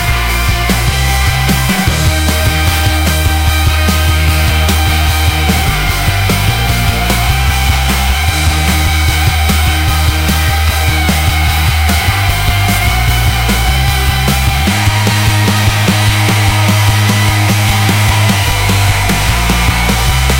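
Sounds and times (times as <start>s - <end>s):
powerful rock anthems: 0.0s - 20.3s.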